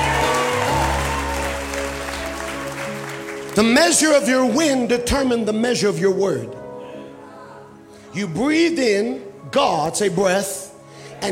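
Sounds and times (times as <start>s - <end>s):
audience hand clapping: 0.0s - 4.5s
speech: 3.6s - 6.6s, 8.2s - 10.6s.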